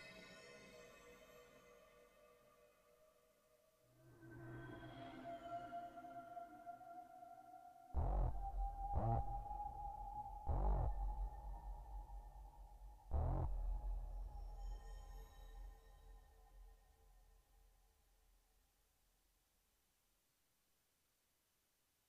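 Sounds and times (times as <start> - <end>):
horror choir of siren voices in a cavern: 0.0 - 15.9.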